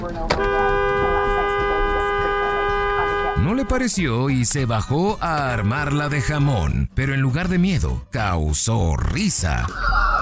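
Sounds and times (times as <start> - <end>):
car horn honking: 0.3 - 6.1
speech: 3.4 - 10.0.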